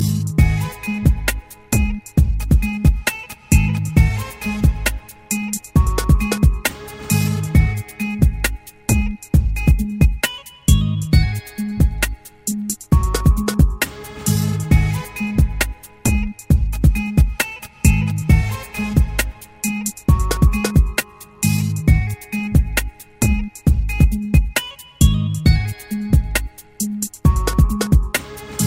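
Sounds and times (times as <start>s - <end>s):
music beat: 0.0s - 28.6s.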